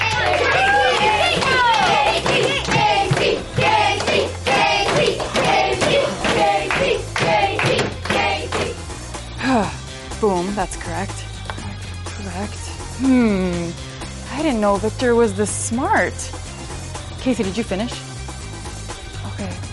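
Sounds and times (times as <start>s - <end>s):
classroom of children cheering: 0.0s - 3.2s
classroom of children clapping: 0.0s - 8.8s
speech: 10.6s - 11.3s, 12.4s - 13.8s, 14.4s - 16.4s, 17.2s - 18.0s.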